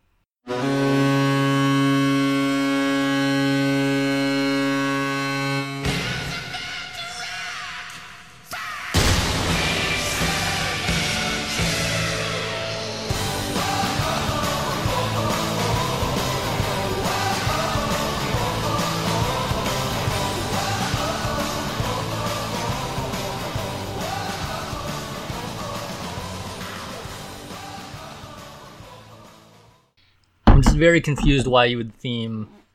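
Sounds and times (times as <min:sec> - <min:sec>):
music: 0:00.4 - 0:07.3, 0:09.0 - 0:30.0
hockey arena goal horn blaring: 0:00.5 - 0:06.3
hockey arena goal cannon blast: 0:09.0 - 0:10.3
speech: 0:30.8 - 0:32.6.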